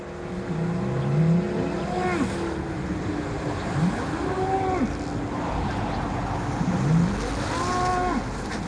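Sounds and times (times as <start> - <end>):
constant roar of motorway traffic: 0.0 - 8.6
Belgian Blue cattle lowing by a roadside: 1.1 - 2.6, 3.8 - 5.0, 6.7 - 8.3.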